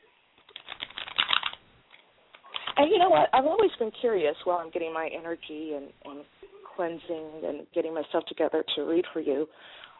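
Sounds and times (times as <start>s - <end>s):
Mother Peace Tarot cards being shuffled: 0.4s - 1.6s, 2.4s - 2.9s
speech: 2.8s - 9.8s.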